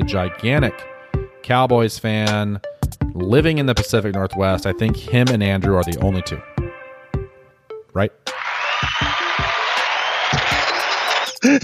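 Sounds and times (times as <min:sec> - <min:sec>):
speech: 0:00.1 - 0:06.5, 0:07.9 - 0:09.1, 0:11.4 - 0:11.6
crowd applause: 0:08.4 - 0:11.6.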